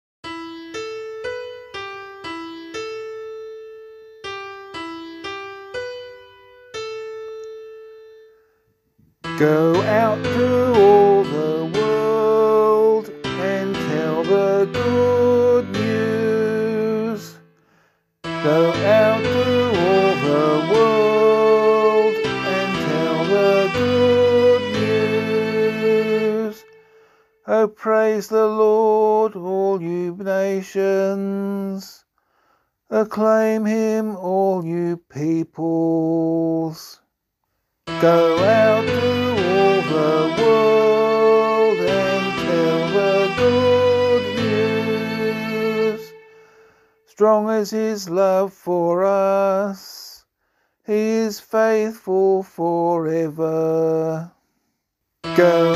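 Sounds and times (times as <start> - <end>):
psalm in C sung by voice: 9.3 - 17.5, 18.2 - 32.0, 32.9 - 37.0, 37.9 - 50.3, 50.9 - 54.4, 55.2 - 55.7.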